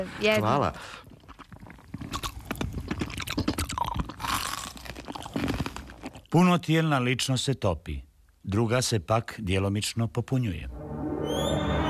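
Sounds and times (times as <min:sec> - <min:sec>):
speech: 0:00.0 - 0:01.1, 0:06.3 - 0:10.9
person crunching on ice cubes: 0:01.5 - 0:06.3.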